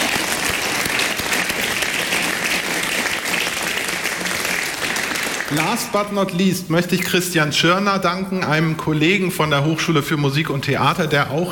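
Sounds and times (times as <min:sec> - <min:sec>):
audience applause: 0:00.0 - 0:06.3
speech: 0:05.5 - 0:11.5.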